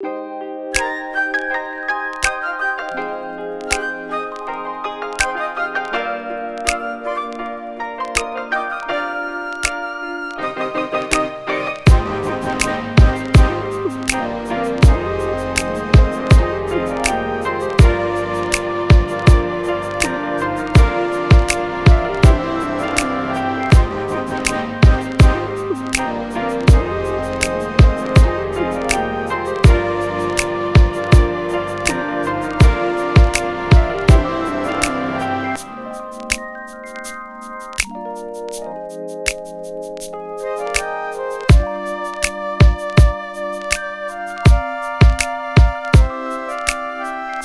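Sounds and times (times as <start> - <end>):
smooth R&B in C minor: 0.8 - 47.4.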